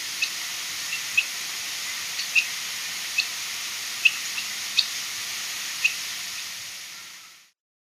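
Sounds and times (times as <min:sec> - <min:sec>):
Golden-rumped Euphonia calling in Ecuador: 0:00.2 - 0:03.4, 0:04.0 - 0:05.0, 0:05.8 - 0:06.1.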